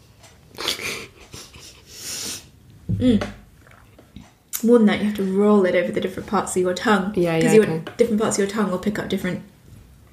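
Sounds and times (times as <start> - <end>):
person sniffing at a drink: 0.6 - 2.6
speech: 2.9 - 3.4, 4.6 - 9.5.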